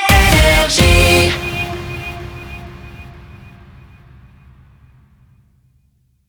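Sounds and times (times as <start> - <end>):
shotgun jingle: 0.1 - 4.2.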